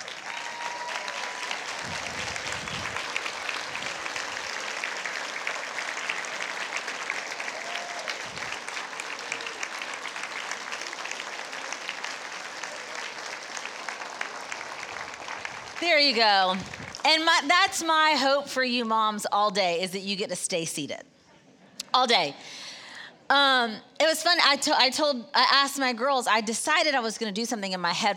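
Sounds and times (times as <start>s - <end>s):
standing ovation applause: 0.0s - 17.1s
speech: 15.8s - 21.1s, 22.0s - 22.6s, 23.3s - 28.1s.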